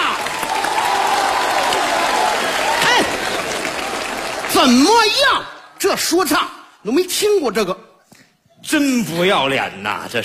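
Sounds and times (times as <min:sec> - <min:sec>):
live audience applause at a comedy stage act: 0:00.0 - 0:05.3
speech: 0:04.6 - 0:07.8, 0:08.6 - 0:10.2.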